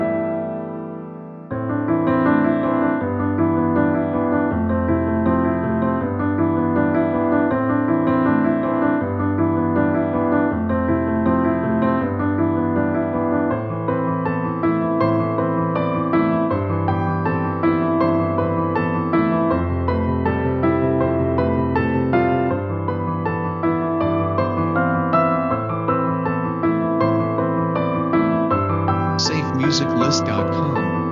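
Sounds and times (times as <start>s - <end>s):
sad piano music: 0.0s - 31.1s.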